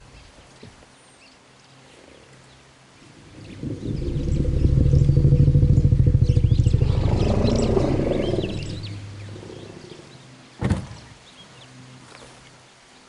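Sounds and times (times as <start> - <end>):
elephant call and response: 3.0 - 10.2.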